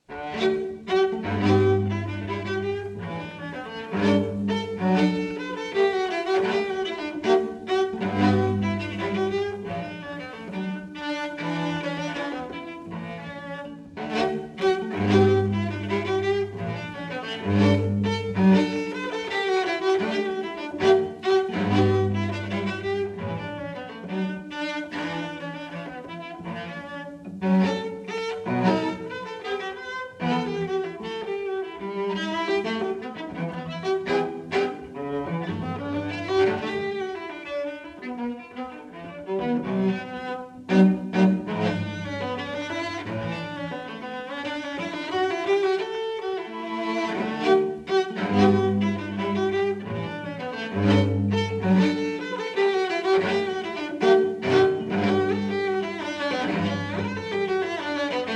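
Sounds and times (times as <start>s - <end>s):
solo cello playing a minuet live: 0.0s - 58.3s.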